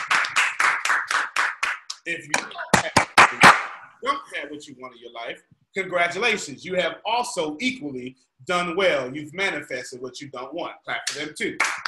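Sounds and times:
audience clapping: 0.0s - 3.8s, 11.1s - 11.8s
speech: 2.1s - 11.8s.

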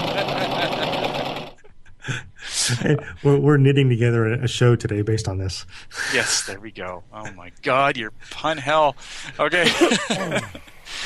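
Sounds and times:
sewing machine running: 0.0s - 1.6s
laughter: 0.0s - 3.3s, 9.3s - 11.0s
speech: 2.1s - 11.0s.

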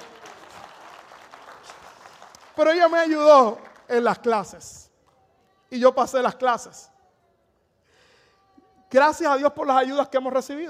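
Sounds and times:
audience applause: 0.0s - 3.9s
speech: 2.6s - 4.8s, 5.7s - 6.9s, 8.9s - 10.6s.

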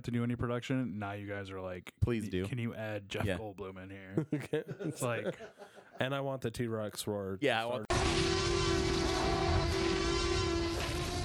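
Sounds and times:
speech: 0.0s - 8.0s
laughter: 4.2s - 6.0s
very slow moving motorcycle: 7.9s - 11.2s.

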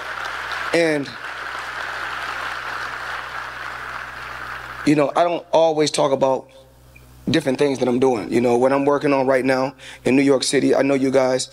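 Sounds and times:
audience applause: 0.0s - 5.0s
speech: 0.7s - 1.2s, 4.8s - 6.6s, 7.2s - 11.5s.

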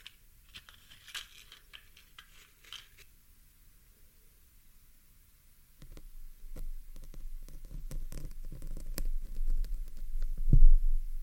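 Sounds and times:
pin plucked from a microphone: 5.8s - 10.9s
microphone pulled handling noise: 7.8s - 11.0s.

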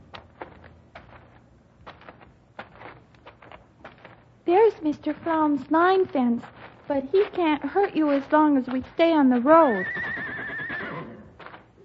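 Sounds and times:
speech: 4.5s - 10.1s
distant horse whinnying: 9.7s - 11.4s.

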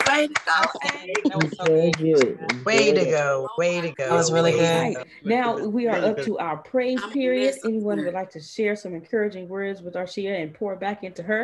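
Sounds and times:
round of applause: 0.0s - 3.0s
laughter: 0.0s - 6.3s, 7.0s - 8.1s
speech: 0.2s - 11.4s.

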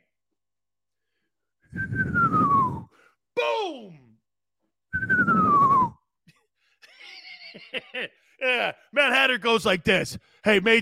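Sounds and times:
person whistling: 1.7s - 3.1s, 4.9s - 6.1s
laughter: 6.8s - 8.8s
speech: 7.9s - 10.8s.

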